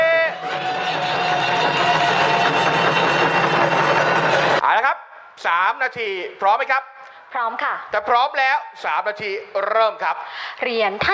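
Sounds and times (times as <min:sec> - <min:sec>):
audience applause: 0:00.1 - 0:04.6
speech: 0:05.4 - 0:11.1.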